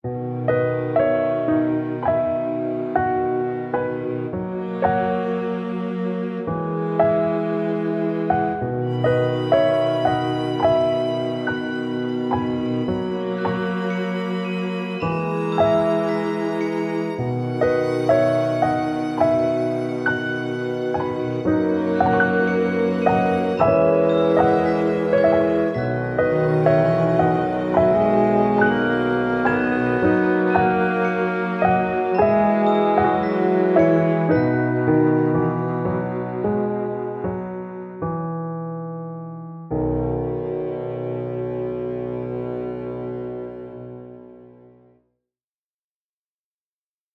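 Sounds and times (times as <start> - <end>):
orchestra: 0.0 - 38.0, 39.8 - 44.7.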